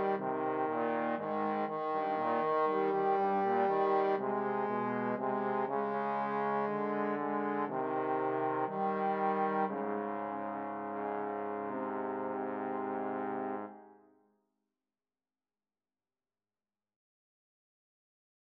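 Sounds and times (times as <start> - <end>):
trombone trio playing a romance: 0.0 - 13.8.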